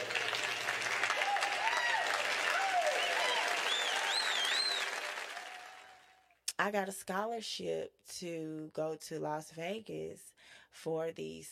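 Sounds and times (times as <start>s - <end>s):
hand claps: 0.0s - 6.0s
speech: 6.6s - 11.5s.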